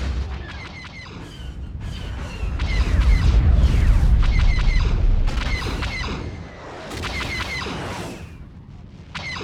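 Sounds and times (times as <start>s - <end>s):
ambience: 0.1s - 7.6s.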